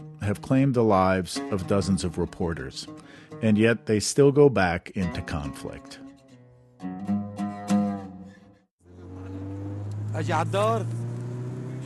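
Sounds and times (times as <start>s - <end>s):
speech: 0.2s - 6.0s, 10.2s - 11.0s
car speeding along a road: 8.8s - 11.8s.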